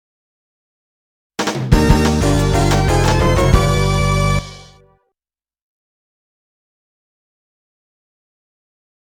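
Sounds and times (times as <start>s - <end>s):
fanfare: 1.4s - 4.9s.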